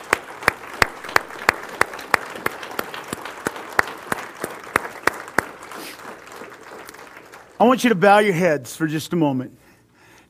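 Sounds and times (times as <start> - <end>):
scattered applause: 0.0 - 8.0
audience clapping in unison: 0.0 - 8.4
speech: 7.6 - 9.6.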